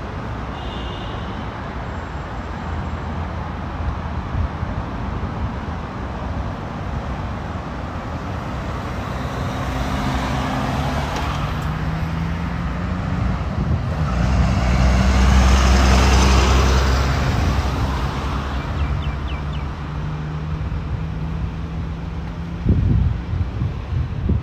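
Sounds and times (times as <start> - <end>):
traffic rumbling in Modiin, Israel: 0.0 - 24.4
vehicle passing: 7.4 - 24.1.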